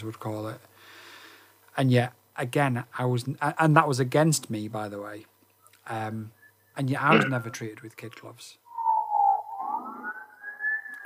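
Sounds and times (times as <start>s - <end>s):
speech: 0.0s - 0.7s, 1.8s - 8.6s
police car siren passing by: 8.8s - 11.0s.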